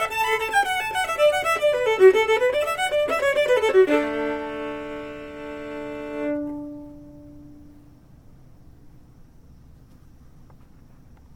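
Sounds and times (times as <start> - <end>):
Irish fiddle chords: 0.0 - 7.7.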